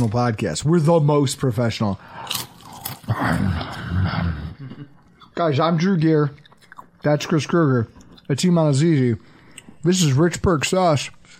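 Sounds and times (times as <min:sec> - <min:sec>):
speech: 0:00.0 - 0:02.5, 0:03.1 - 0:06.4, 0:07.0 - 0:11.3
person chewing food: 0:02.1 - 0:05.4, 0:06.3 - 0:08.6.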